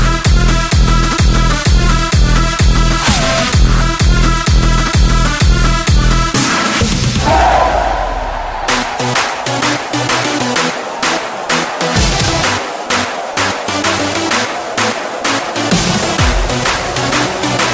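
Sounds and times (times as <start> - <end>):
EDM snares: 0.0 - 7.2, 8.6 - 17.7
crowd noise: 7.1 - 17.7.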